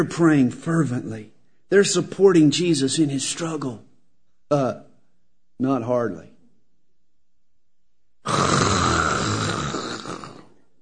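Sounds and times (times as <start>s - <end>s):
speech: 0.0s - 3.9s, 4.5s - 4.9s, 5.6s - 6.3s
voice imitating loud snoring: 8.2s - 10.6s.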